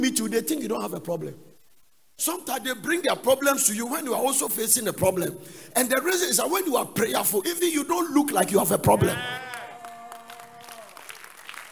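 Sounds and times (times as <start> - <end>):
speech: 0.0 - 1.5, 2.2 - 9.4
audience clapping: 9.0 - 11.7.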